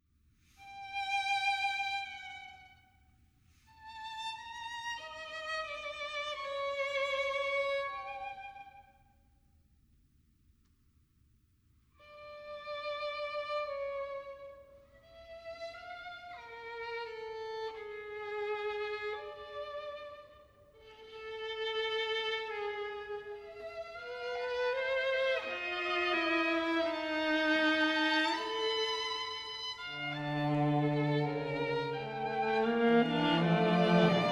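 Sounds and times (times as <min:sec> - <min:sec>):
string quartet: 0:00.6 - 0:02.8, 0:03.7 - 0:08.8, 0:12.1 - 0:34.2.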